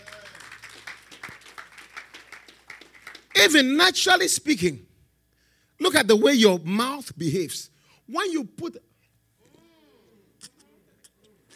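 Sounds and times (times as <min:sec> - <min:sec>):
audience clapping: 0:00.0 - 0:03.8
speech: 0:03.4 - 0:04.9, 0:05.9 - 0:08.9.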